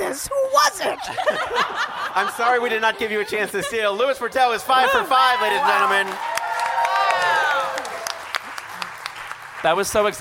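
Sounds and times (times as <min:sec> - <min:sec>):
speech: 0:00.2 - 0:06.4, 0:09.6 - 0:10.1
laughter: 0:00.9 - 0:06.1
high whooping cheer: 0:04.8 - 0:08.5
game show studio audience clapping: 0:05.5 - 0:10.1.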